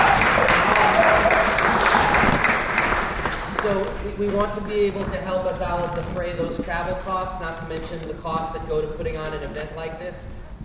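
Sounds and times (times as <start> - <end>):
round of applause: 0.0 - 4.0
speech: 3.7 - 10.4.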